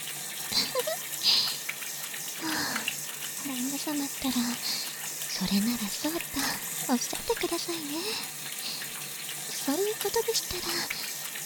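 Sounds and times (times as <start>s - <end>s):
shower water spraying: 0.0s - 11.4s
speech: 3.8s - 4.8s, 5.4s - 8.6s, 9.7s - 11.1s.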